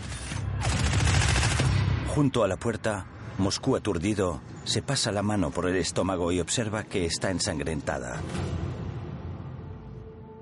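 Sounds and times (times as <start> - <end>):
police gunfire: 0.5 - 1.9
speech: 2.2 - 8.7.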